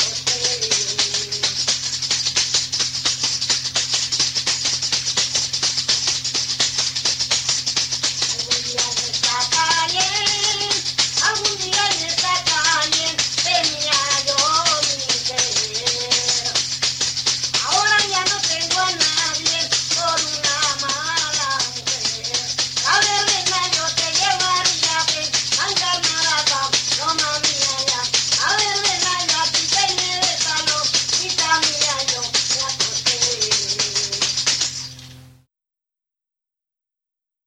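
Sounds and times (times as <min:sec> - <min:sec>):
jota folk music in Castronuño: 0:00.0 - 0:34.9.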